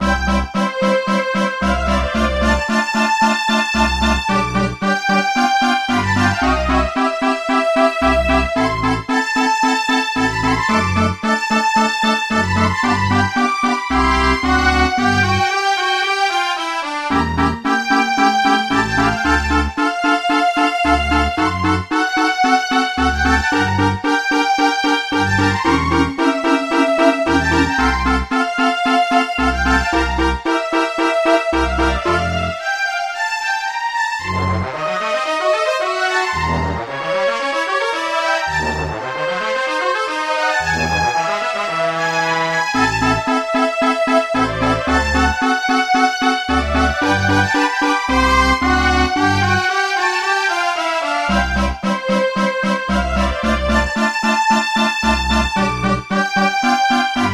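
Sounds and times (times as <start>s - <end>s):
orchestral music: 0.0s - 57.3s.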